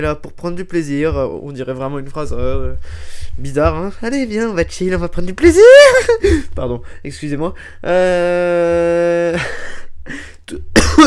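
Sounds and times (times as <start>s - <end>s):
speech: 0.0s - 11.0s
person coughing from choking: 10.5s - 11.0s.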